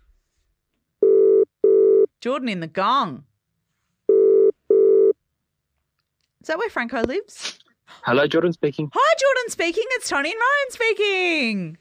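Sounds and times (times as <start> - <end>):
speech: 2.2 - 3.3, 6.4 - 11.7
telephone line ringing out with double-burst rings: 4.1 - 5.2.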